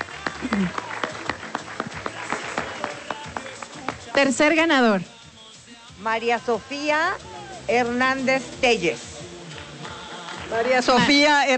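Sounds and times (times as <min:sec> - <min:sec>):
small audience applause: 0:00.0 - 0:04.2, 0:09.4 - 0:11.4
speech: 0:00.4 - 0:00.9, 0:04.2 - 0:05.1, 0:06.0 - 0:09.1, 0:10.5 - 0:11.5.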